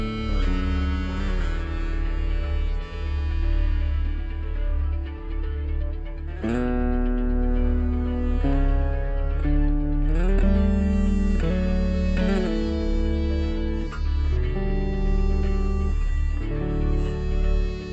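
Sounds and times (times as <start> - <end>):
electric bass playing a bounce rhythm in seven-eight: 0.0 - 17.9.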